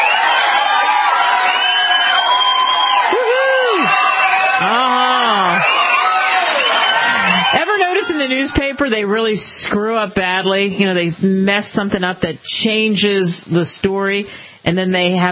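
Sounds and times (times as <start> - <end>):
audience applause: 0.0 - 8.6
speech: 8.2 - 15.3.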